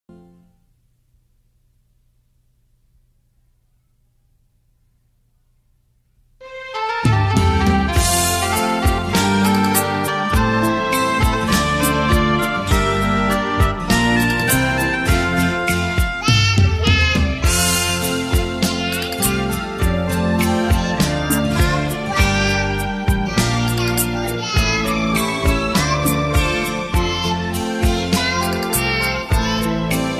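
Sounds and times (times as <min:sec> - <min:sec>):
karaoke singing: 0:06.7 - 0:30.1.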